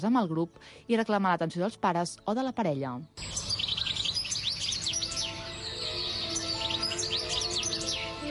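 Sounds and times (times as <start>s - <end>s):
speech: 0.0s - 3.6s
songbird singing: 0.0s - 8.2s.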